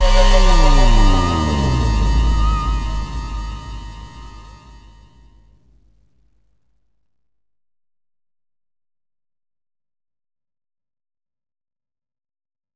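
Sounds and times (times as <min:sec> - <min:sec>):
music sting: 0:00.0 - 0:05.2.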